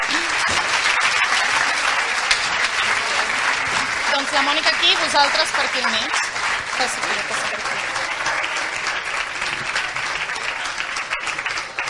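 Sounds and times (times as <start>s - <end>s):
audience applause: 0.0s - 11.8s
speech: 4.3s - 7.8s.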